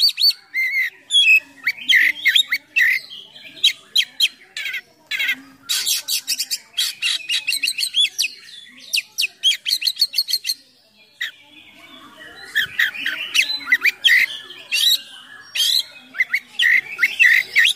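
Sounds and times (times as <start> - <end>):
Oriental magpie-robin in full song with imitations of other birds: 0.0 - 17.7.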